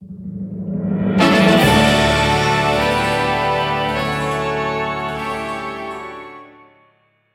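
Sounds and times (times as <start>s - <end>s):
museum fanfare: 1.2s - 7.0s.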